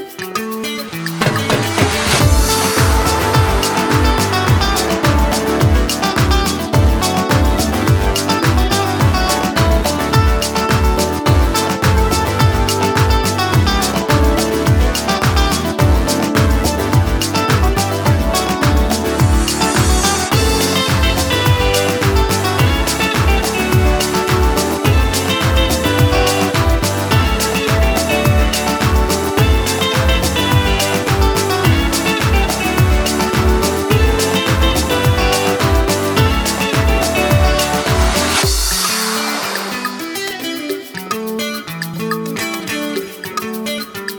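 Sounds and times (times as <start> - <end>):
backing track: 0.2 - 44.1.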